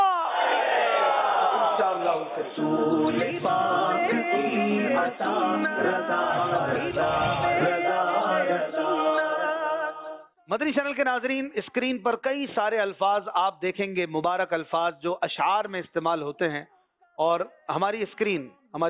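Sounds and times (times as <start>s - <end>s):
crowd chanting a religious slogan in unison: 0.0s - 10.3s
speech: 2.2s - 9.1s, 10.5s - 18.8s.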